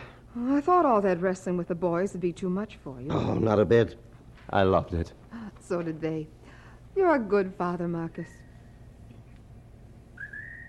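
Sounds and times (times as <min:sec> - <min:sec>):
speech: 0:00.4 - 0:06.4, 0:07.0 - 0:08.4
lonely bird call: 0:10.2 - 0:10.6.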